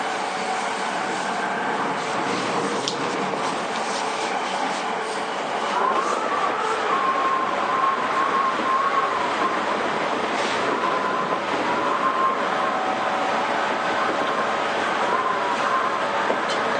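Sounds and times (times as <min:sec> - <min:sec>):
JR East 231 series train rumble and rattle from Ito to Yokohama: 0:00.0 - 0:16.7.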